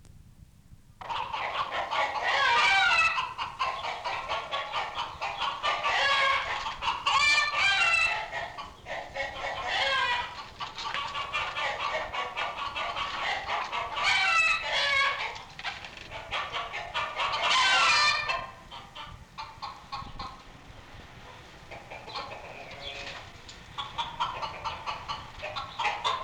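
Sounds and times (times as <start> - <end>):
flock of chickens clucking: 1.0 - 26.2.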